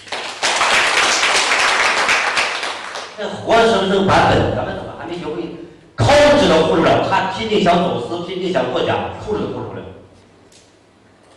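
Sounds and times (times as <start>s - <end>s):
crowd applauding: 0.0s - 3.2s
speech: 3.2s - 10.0s.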